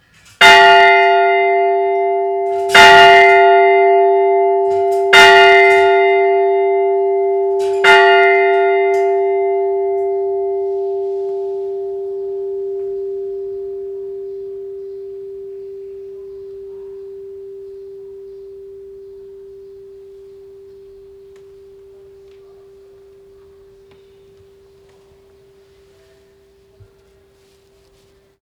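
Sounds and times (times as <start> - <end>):
bell: 0.0 - 28.0.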